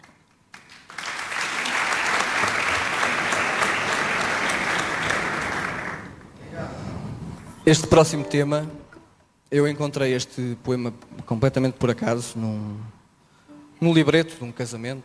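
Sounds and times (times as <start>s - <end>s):
audience applause: 0.5s - 6.2s
speech: 7.7s - 8.8s, 9.5s - 13.0s, 13.8s - 15.0s.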